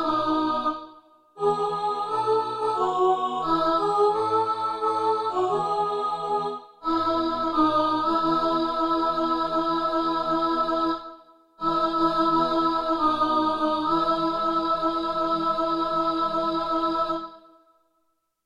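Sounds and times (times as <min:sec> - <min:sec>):
alto choir singing: 0:00.0 - 0:17.6.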